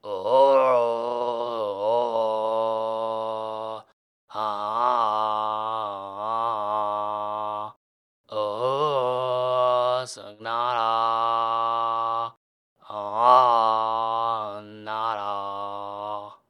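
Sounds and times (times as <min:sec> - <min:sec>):
person singing: 0:00.0 - 0:16.4.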